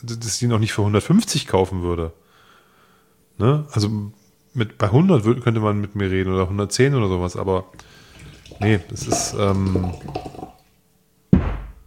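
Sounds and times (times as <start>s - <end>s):
speech: 0.0s - 2.2s, 3.4s - 10.5s
soft low knocking and sloshing: 8.0s - 10.7s
water poured aggressively from a water bottle: 8.1s - 10.7s.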